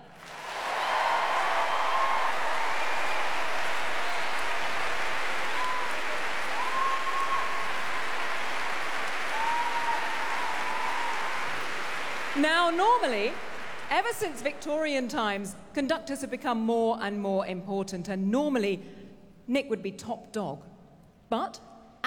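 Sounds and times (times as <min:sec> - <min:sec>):
audience cheering: 0:00.0 - 0:14.6
speech: 0:12.4 - 0:20.7, 0:21.3 - 0:22.0.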